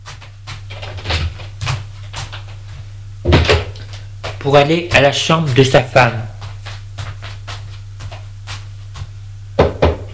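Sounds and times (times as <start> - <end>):
low steady hum: 0.0 - 10.1
speech: 4.4 - 6.3
firm knocks on a door: 9.6 - 10.1.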